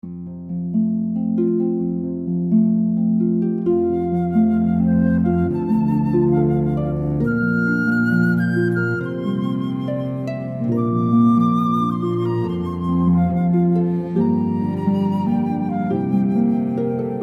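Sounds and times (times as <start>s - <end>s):
harp: 0.0s - 17.2s
cello: 2.0s - 17.2s
flute: 3.4s - 17.2s.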